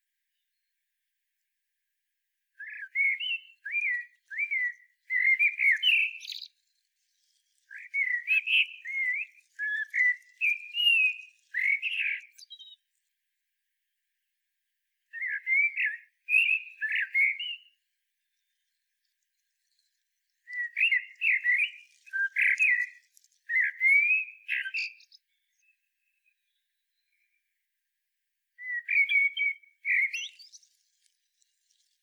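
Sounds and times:
Common blackbird song of fluty whistles: 2.6 - 12.9, 15.1 - 18.4, 20.3 - 27.6, 28.6 - 30.8.

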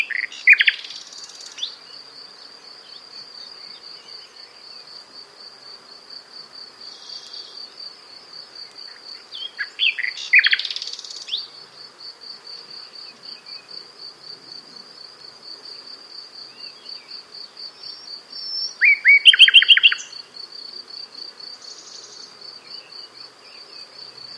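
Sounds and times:
Common nightingale singing: 0.0 - 1.8, 9.3 - 11.5, 17.8 - 20.2
high insect drone: 0.0 - 24.3.

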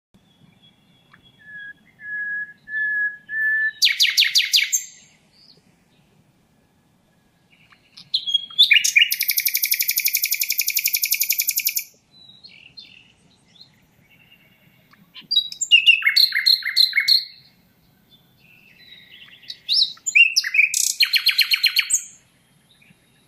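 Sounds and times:
common nightingale song: 0.2 - 23.2.

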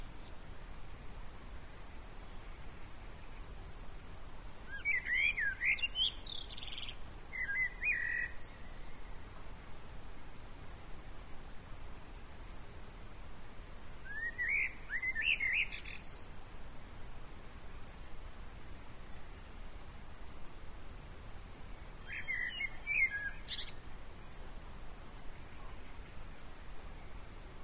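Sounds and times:
Common blackbird twittering: 0.0 - 0.5, 4.7 - 9.0, 14.1 - 16.4, 22.0 - 24.1
steady background hiss: 0.0 - 27.6.

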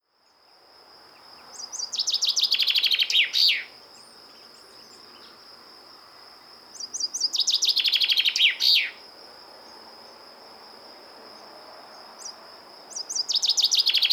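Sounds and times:
Common chaffinch song with descending and rattling trills: 1.6 - 3.7, 6.8 - 9.0, 12.9 - 14.1.

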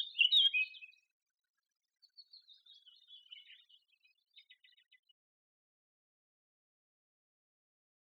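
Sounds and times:
Eurasian blackcap song: 0.0 - 5.4.

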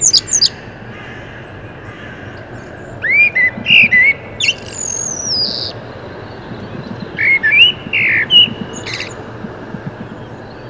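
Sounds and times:
Common blackbird singing: 3.0 - 9.2.

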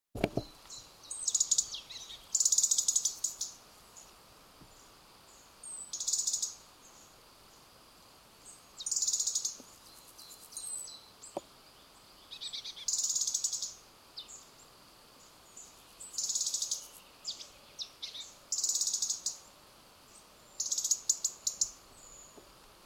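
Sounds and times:
European robin ticking calls: 0.3 - 3.6, 5.6 - 7.0, 8.8 - 11.5, 12.2 - 14.4, 15.6 - 19.4, 20.6 - 22.8.

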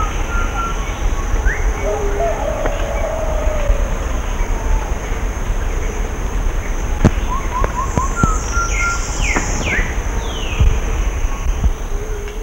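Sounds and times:
low rumbling background noise: 0.0 - 12.4
bird chirps and whistles: 7.2 - 10.5.

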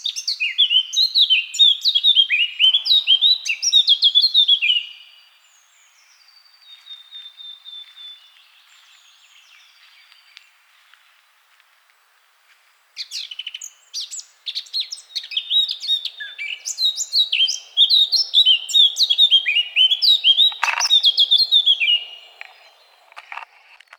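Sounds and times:
Eurasian blackcap singing: 0.0 - 5.0, 13.0 - 23.0.

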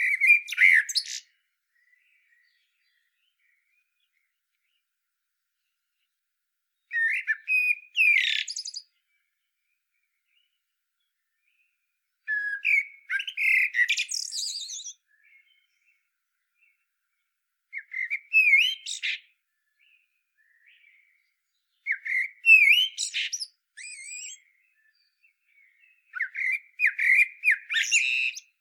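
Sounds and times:
common blackbird singing: 0.0 - 4.9, 6.8 - 28.6.

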